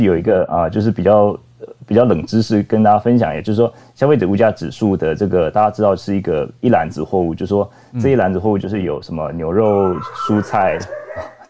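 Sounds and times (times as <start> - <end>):
speech: 0.0 - 11.3
dog barking: 9.8 - 11.4.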